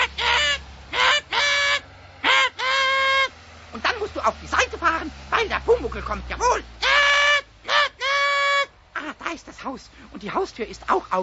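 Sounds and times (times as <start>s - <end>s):
voice imitating a car horn with nasal honking blasts: 0.0s - 3.3s, 5.4s - 9.2s
speech: 4.0s - 6.8s, 9.3s - 11.2s.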